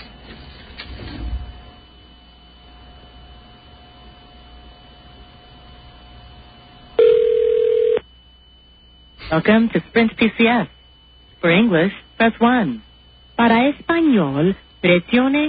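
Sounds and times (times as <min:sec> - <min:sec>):
telephone ringing while waiting for answer: 0:07.0 - 0:08.0
speech: 0:09.3 - 0:10.8, 0:11.4 - 0:15.4.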